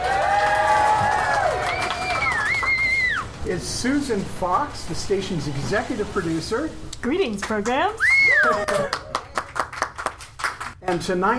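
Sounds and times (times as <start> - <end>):
live audience in a clubhouse cheering and applauding: 0.0 - 3.4, 8.0 - 10.8
speech: 3.6 - 9.1, 10.9 - 11.3.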